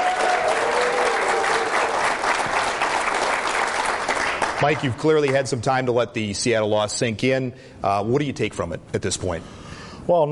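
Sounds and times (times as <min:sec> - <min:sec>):
studio audience applause welcoming Green Bay Packers head coach Mike McCarthy: 0:00.0 - 0:05.4
speech: 0:04.6 - 0:10.2.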